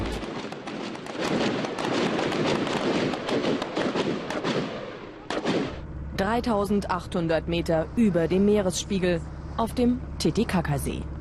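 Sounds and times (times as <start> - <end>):
gunfire during naval military exercise: 0.1 - 5.9
speech: 6.2 - 11.1.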